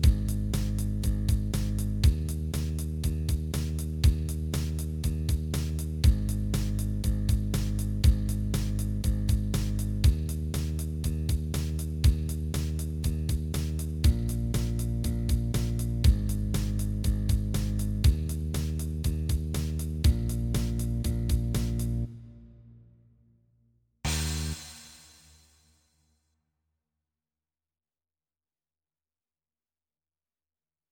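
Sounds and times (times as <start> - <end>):
bass startup blues in E flat at 120: 0.0 - 22.1.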